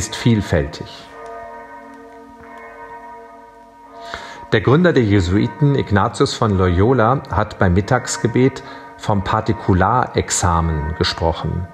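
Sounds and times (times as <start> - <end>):
speech: 0.0 - 1.1, 4.5 - 11.7
bell ringing: 0.0 - 11.7.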